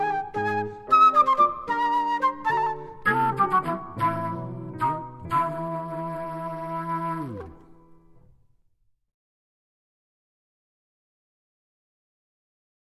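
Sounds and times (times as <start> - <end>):
medieval interlude music: 0.0 - 8.1.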